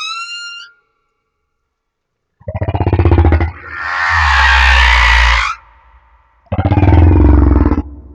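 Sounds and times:
humpback whale song off Madagascar: 2.5s - 8.1s.

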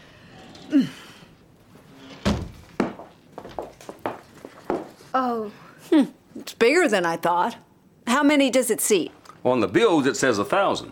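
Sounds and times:
speech: 0.7s - 1.0s, 5.2s - 10.9s
heavy doors into a floating theater's auditorium pushed open: 2.2s - 2.9s.

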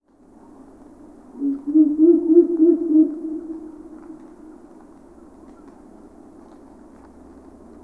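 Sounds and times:
Ural owl hooting: 1.3s - 4.6s.

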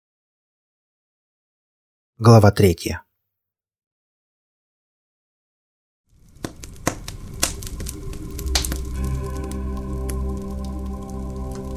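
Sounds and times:
speech: 2.2s - 3.0s
campfire crackling inside an iron barrel: 6.1s - 11.7s
low humming drone: 7.1s - 11.7s.

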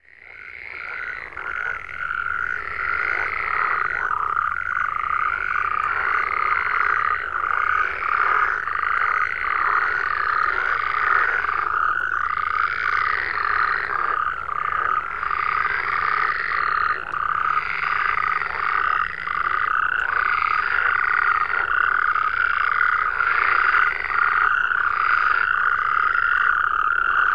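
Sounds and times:
frogs croaking in a dense chorus: 0.0s - 27.3s.

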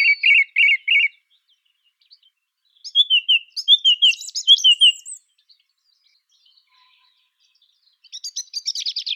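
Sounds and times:
song thrush singing ringing arched whistles: 0.0s - 7.0s, 8.0s - 9.1s.

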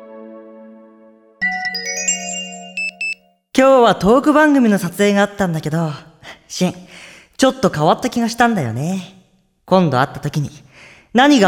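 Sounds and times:
phone notification chime for an incoming email: 1.4s - 3.3s
speech: 3.6s - 11.4s.

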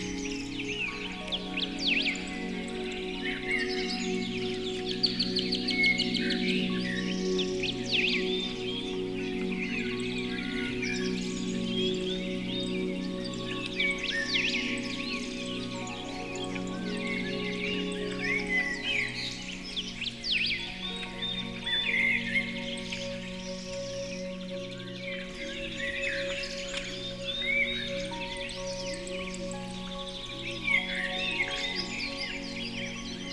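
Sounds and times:
birds singing: 0.0s - 33.3s
soft held musical tones: 0.0s - 33.3s.

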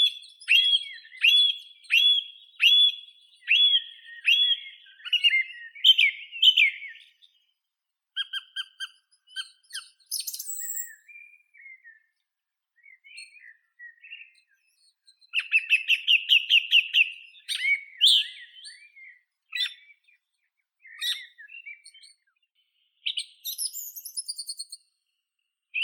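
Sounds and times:
song thrush Turdus philomelos singing: 0.0s - 25.8s.

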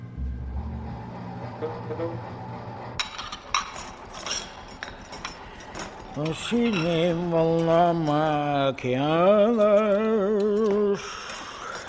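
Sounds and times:
speech: 1.6s - 2.4s, 6.2s - 11.2s
washing dishes in ship's galley: 3.0s - 11.8s.

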